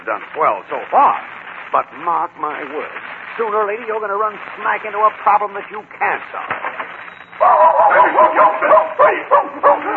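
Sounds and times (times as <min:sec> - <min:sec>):
speech: 0:00.1 - 0:09.9
dog barking and yipping: 0:07.4 - 0:09.9.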